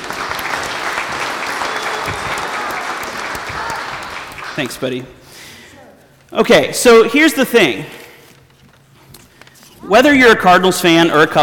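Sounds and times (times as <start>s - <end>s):
round of applause: 0.0s - 5.2s
speech: 4.6s - 5.2s, 6.3s - 8.0s, 9.9s - 11.4s.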